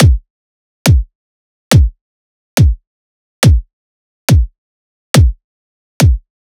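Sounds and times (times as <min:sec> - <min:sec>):
riddim kick drum loop: 0:00.0 - 0:00.2, 0:00.9 - 0:01.1, 0:01.7 - 0:02.0, 0:02.6 - 0:02.8, 0:03.4 - 0:03.7, 0:04.3 - 0:04.5, 0:05.2 - 0:05.4, 0:06.0 - 0:06.2.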